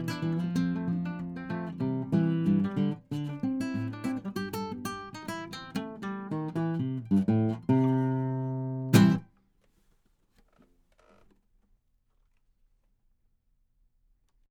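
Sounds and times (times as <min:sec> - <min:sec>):
Martin guitar: 0:00.0 - 0:09.4.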